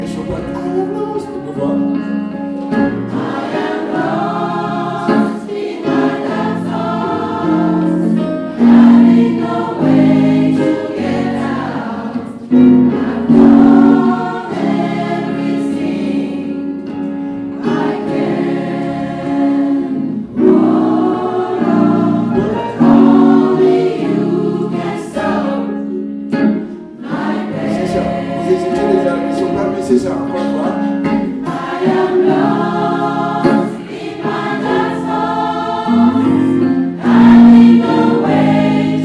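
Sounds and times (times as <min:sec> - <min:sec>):
soprano and alto singing: 0:00.0 - 0:39.0.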